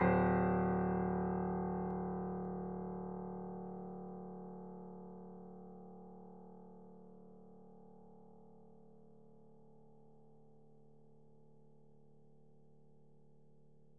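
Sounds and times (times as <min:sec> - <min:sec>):
Steinway piano played fortissimo: 0:00.0 - 0:05.6.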